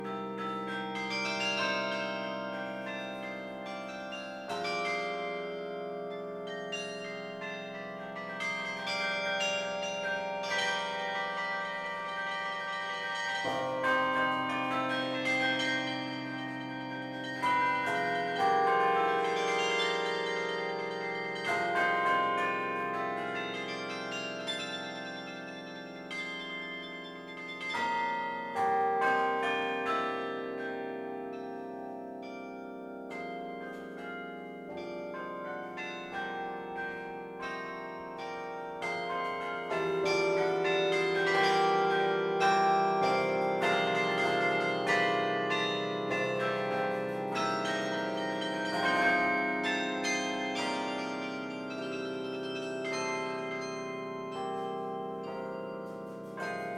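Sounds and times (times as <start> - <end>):
bell: 0.0 - 56.7.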